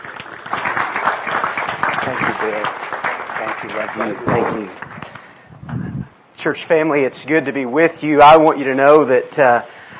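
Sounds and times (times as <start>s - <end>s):
church congregation applauding to welcome a speaker: 0.0s - 5.4s
speech: 2.0s - 4.9s, 6.4s - 9.9s.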